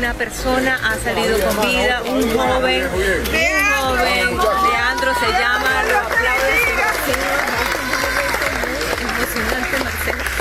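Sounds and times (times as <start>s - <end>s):
speech: 0.0s - 7.4s
excited shouting voices at a rescue in San Bernardino, Caracas: 3.4s - 9.1s
clapping at a rescue in San Bernardino, Caracas: 5.6s - 10.3s.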